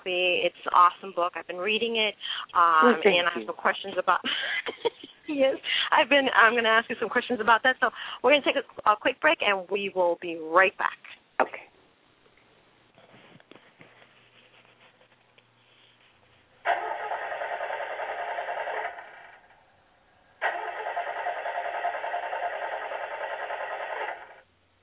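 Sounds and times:
speech: 0.1s - 11.6s
car engine starter cranking: 16.6s - 19.6s, 20.4s - 24.4s.

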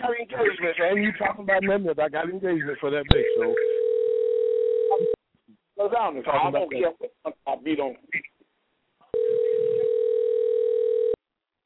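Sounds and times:
speech: 0.2s - 3.8s, 5.8s - 8.3s
telephone dial tone: 3.3s - 5.2s, 9.2s - 11.2s.

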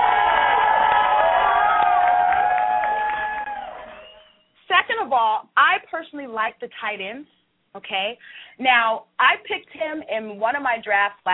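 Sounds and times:
crowd applause sound effect: 0.0s - 4.4s
speech: 5.1s - 11.3s.

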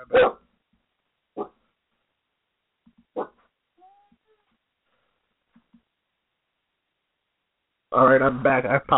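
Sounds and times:
speech: 0.0s - 0.3s, 8.0s - 8.9s
dog barking excitedly: 0.0s - 0.4s, 1.3s - 1.6s, 3.1s - 3.4s.

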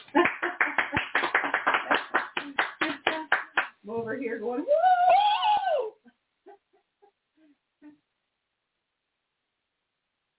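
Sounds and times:
audience clapping hands: 0.0s - 3.8s
speech: 4.2s - 4.9s.

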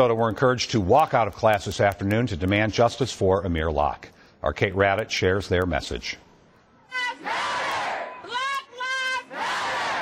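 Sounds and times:
speech: 0.0s - 6.2s
protest crowd chanting: 7.1s - 8.3s, 9.2s - 10.0s.

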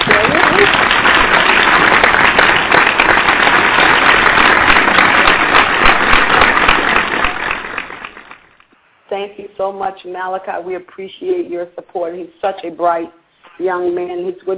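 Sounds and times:
hand clapping applause: 0.0s - 8.7s
speech: 9.7s - 14.5s.

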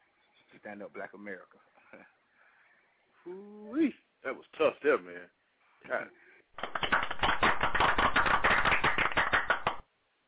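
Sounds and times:
speech: 0.6s - 2.2s, 3.2s - 7.0s
brief vocal sound: 3.2s - 3.9s
loud dense applause: 6.6s - 9.8s.

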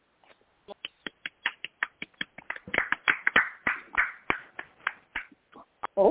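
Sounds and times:
applause: 1.2s - 5.3s.

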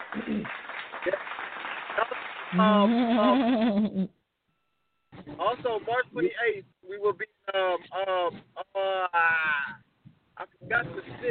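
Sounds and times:
applause clapping sound effect: 0.0s - 2.8s
speech: 0.3s - 1.2s, 2.5s - 4.2s, 5.4s - 9.8s, 10.4s - 11.3s.

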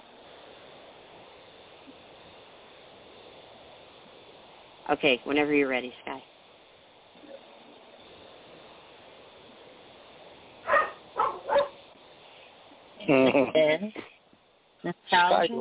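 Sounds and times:
low steady hiss: 0.0s - 15.5s
speech: 4.9s - 6.3s
dog barking: 10.6s - 11.8s.

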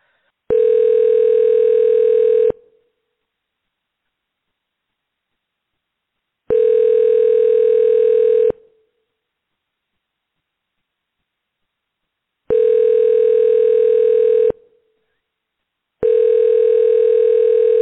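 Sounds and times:
overseas telephone ringing tone via internet calling service: 0.5s - 2.6s, 6.5s - 8.6s, 12.5s - 14.6s, 16.0s - 17.8s.

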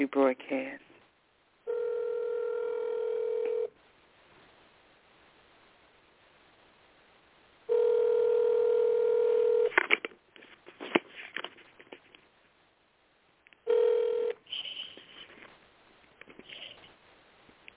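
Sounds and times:
speech: 0.0s - 0.9s
telephone ring tones of an outgoing call: 1.7s - 3.7s, 7.7s - 9.7s, 13.7s - 14.4s.

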